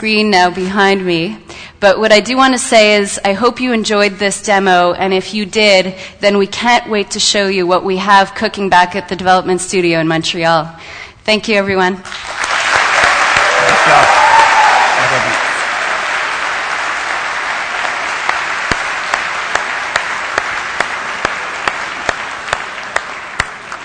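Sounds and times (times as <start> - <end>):
speech: 0.0 - 12.5
audience cheering and applauding: 12.1 - 23.8.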